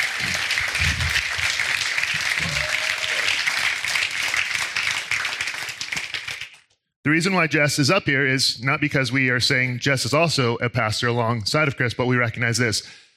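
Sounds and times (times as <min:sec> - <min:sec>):
audience applause: 0:00.0 - 0:06.6
speech: 0:07.1 - 0:13.1.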